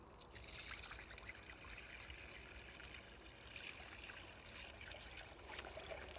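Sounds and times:
water being poured into plant container: 0.2 - 6.1.

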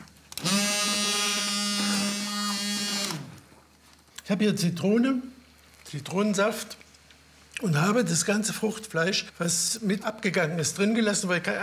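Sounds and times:
immersion blender pureeing peanut dip: 0.4 - 3.4
speech: 4.3 - 6.8, 7.6 - 11.6.

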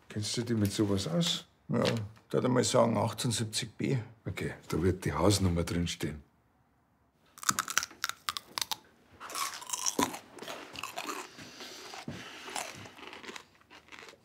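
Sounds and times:
speech: 0.2 - 6.3
loud crunchy chewing while eating: 7.4 - 14.2.

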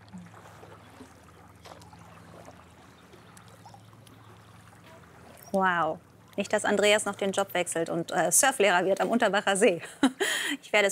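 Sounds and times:
boat being paddled on calm lake water: 0.0 - 9.5
low constant hum: 0.0 - 10.8
speech: 5.5 - 10.8.

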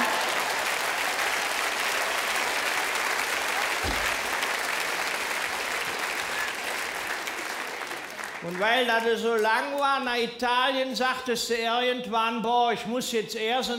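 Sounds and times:
audience applause: 0.0 - 9.2
low thump: 3.8 - 4.3
speech: 8.4 - 13.7.

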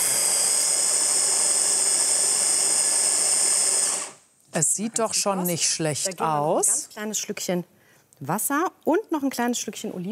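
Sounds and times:
blender mixing capers, tuna and anchovies: 0.0 - 4.2
speech: 4.5 - 10.0.

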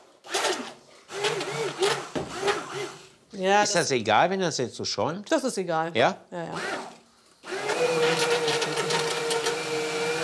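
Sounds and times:
small kitchen blender running: 0.2 - 3.1, 6.5 - 10.2
speech: 3.4 - 6.8.

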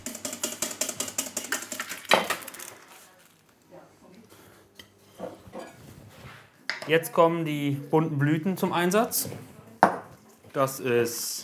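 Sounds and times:
whisking hollandaise sauce in a bowl: 0.0 - 2.0
speech: 6.9 - 9.5, 10.6 - 11.4.

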